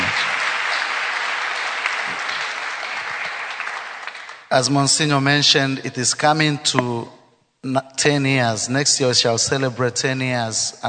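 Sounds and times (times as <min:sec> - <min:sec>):
audience clapping: 0:00.0 - 0:04.6
speech: 0:04.5 - 0:10.8.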